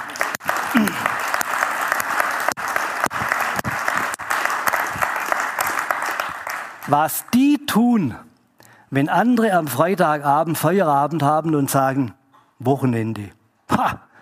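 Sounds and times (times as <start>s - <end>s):
audience applause: 0.0s - 7.2s
speech: 0.7s - 1.1s, 6.9s - 8.2s, 8.9s - 14.0s.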